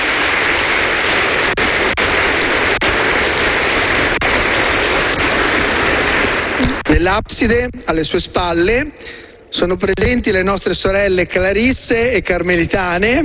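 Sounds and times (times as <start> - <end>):
audience applause: 0.0 - 6.8
speech: 7.0 - 13.2.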